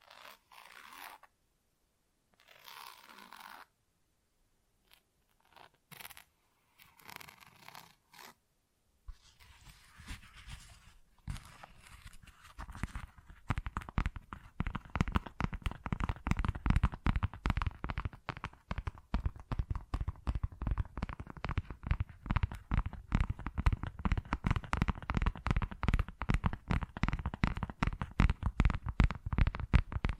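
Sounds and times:
tapping and scratching on textured surfaces: 0:11.3 - 0:30.1.

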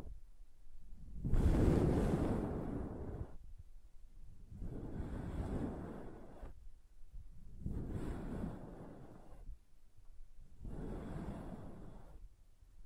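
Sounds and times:
crayon drawing with rough scraping strokes: 0:01.0 - 0:03.4, 0:04.3 - 0:06.6, 0:07.3 - 0:09.6, 0:10.4 - 0:12.8.

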